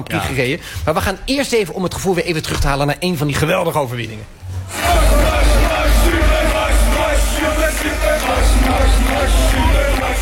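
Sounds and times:
speech: 0:00.0 - 0:04.4
Dutch crowd cheering for Verstappen: 0:04.7 - 0:10.2.

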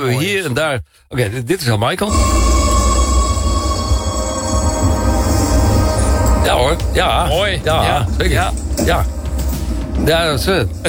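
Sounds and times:
speech: 0:00.0 - 0:02.8, 0:06.4 - 0:09.2, 0:10.0 - 0:10.8
Paris metro train: 0:02.1 - 0:08.4.

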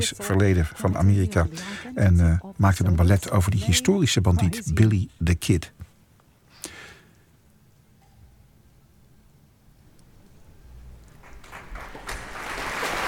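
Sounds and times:
speech: 0:00.0 - 0:05.8
concert audience applauding: 0:11.2 - 0:13.0.

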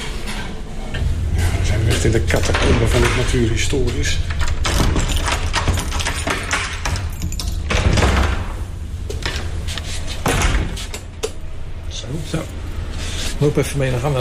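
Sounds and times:
elevator doors sliding and knocking: 0:00.0 - 0:09.6
running lift mechanical hum: 0:00.0 - 0:14.1
speech: 0:02.0 - 0:04.4, 0:13.4 - 0:14.1.

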